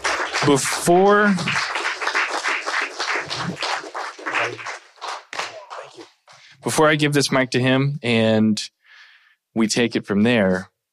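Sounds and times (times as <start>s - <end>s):
audience applause: 0.0s - 6.2s
speech: 0.4s - 1.7s, 6.6s - 8.8s, 9.6s - 10.7s.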